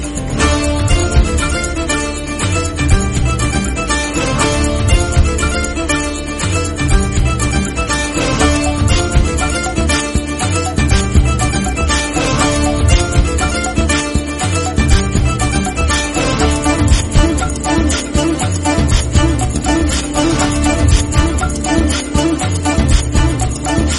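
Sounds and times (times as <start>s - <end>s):
fight background music remix: 0.0s - 23.9s.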